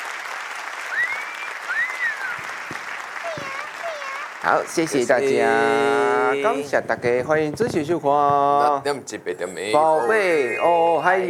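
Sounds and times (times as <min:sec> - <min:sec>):
audience applause: 0:00.0 - 0:06.4
speech: 0:04.4 - 0:11.2.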